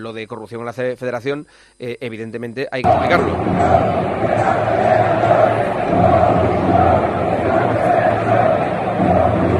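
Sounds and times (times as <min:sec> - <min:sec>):
speech: 0:00.0 - 0:09.5
stadium crowd chanting and shouting: 0:02.8 - 0:09.5.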